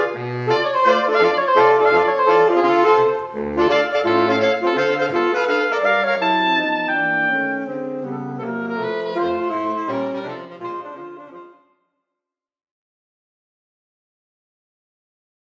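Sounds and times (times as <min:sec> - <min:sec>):
saxophone quartet playing: 0:00.0 - 0:11.6.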